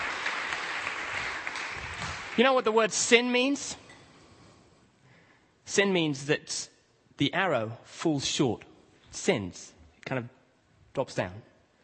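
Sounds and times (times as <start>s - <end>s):
round of applause for a volunteer at a church talk: 0.0s - 2.7s
speech: 2.4s - 3.8s, 5.7s - 10.4s, 11.0s - 11.5s.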